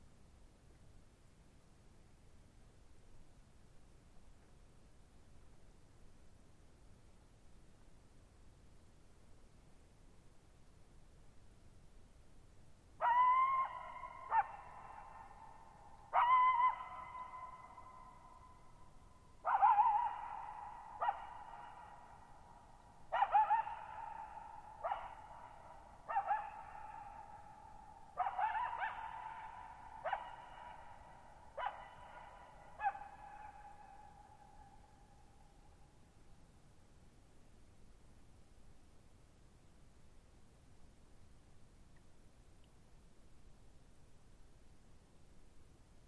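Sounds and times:
coyote howling and yipping with long echo: 13.0s - 18.7s, 19.4s - 22.4s, 23.1s - 34.8s.

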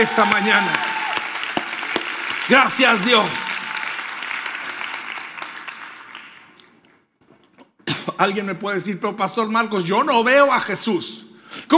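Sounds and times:
speech: 0.0s - 0.9s, 2.5s - 3.4s, 8.2s - 11.7s
crowd applauding: 0.0s - 6.8s.

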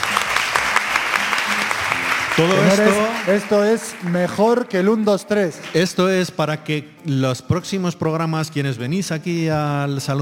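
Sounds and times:
audience applause: 0.0s - 4.8s
speech: 2.4s - 10.2s.

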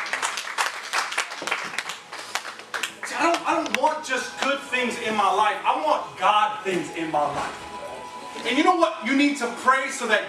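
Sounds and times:
audience clapping: 0.0s - 4.6s
speech: 3.6s - 7.6s, 8.4s - 10.2s.

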